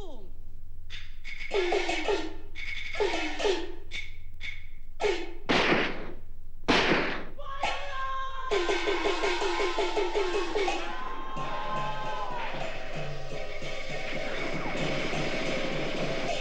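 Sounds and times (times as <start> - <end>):
high-pitched tonal sounds: 0.0 - 16.3
gunshots in a drama: 5.0 - 7.3
laughter: 7.5 - 16.1.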